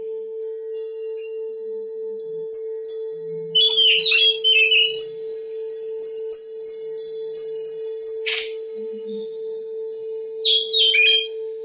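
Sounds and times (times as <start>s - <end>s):
Oriental magpie-robin song: 3.4s - 5.3s, 8.1s - 9.4s, 10.4s - 11.4s.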